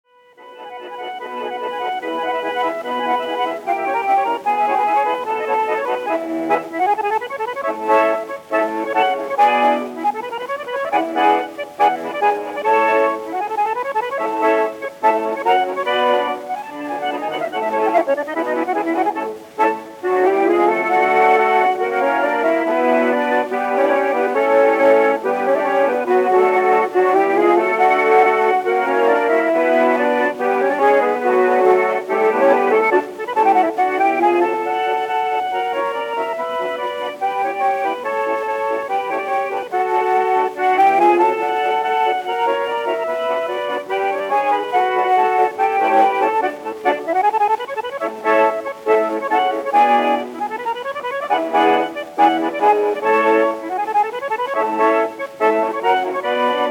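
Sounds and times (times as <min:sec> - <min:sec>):
Neapolitan polka: 0:00.0 - 0:56.6.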